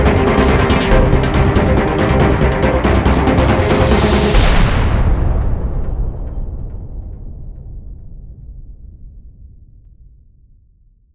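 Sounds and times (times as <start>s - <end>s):
epic electronic trailer music: 0.0s - 8.2s.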